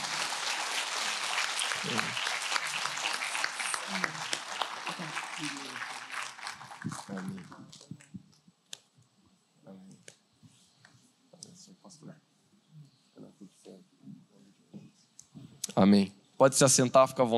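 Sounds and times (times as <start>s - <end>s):
audience applause: 0.0s - 8.1s
speech: 1.8s - 2.2s, 15.8s - 17.3s.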